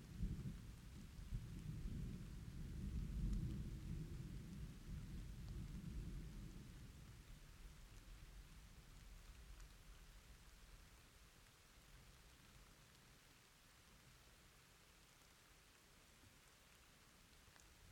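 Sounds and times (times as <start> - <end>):
thunderstorm high in the mountain valley: 0.0 - 7.5.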